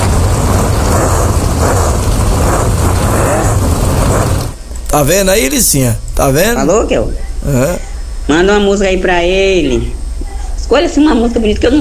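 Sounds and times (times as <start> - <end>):
engine roar of a small vehicle: 0.0 - 4.6
speech: 4.9 - 10.0, 10.7 - 11.7.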